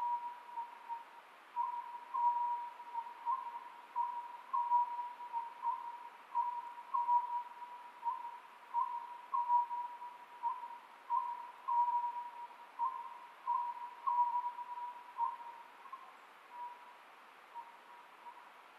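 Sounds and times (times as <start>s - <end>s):
Oriental scops owl whistled song: 0.0s - 16.8s.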